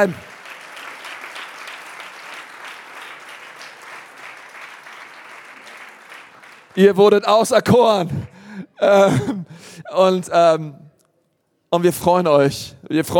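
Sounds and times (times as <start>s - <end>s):
speech: 0.0s - 0.3s, 6.8s - 10.8s, 11.7s - 13.1s
audience applause: 0.0s - 7.2s.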